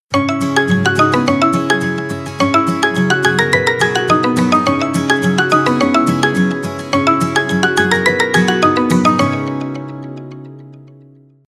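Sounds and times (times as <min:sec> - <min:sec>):
ringtone: 0:00.1 - 0:11.1.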